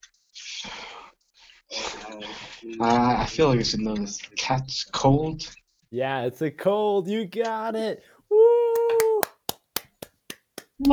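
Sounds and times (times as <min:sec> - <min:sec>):
speech: 0:01.7 - 0:08.6
clapping for a correct answer: 0:08.7 - 0:10.9.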